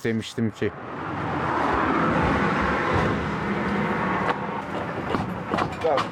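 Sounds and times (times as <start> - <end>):
road noise: 0.0 - 6.1
failing car wheel bearing growling: 1.6 - 6.1
knocks and rattles: 2.2 - 6.1.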